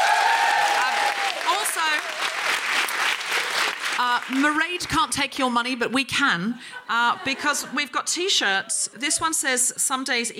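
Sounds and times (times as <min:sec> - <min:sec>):
audience applause: 0:00.0 - 0:04.6
speech: 0:04.0 - 0:10.3.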